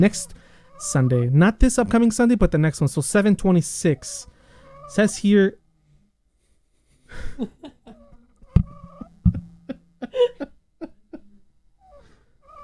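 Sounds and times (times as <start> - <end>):
speech: 0.0 - 4.3, 4.9 - 5.6, 7.1 - 7.7
laughter: 7.1 - 8.0, 9.0 - 11.3
puppy whimpering: 7.8 - 9.4, 11.8 - 12.6.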